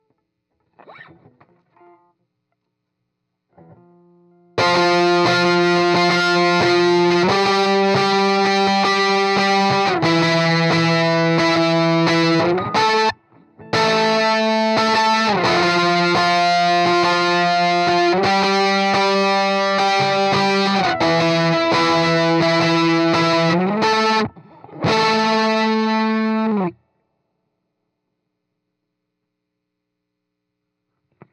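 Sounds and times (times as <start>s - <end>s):
heavy electric guitar: 4.6s - 26.8s.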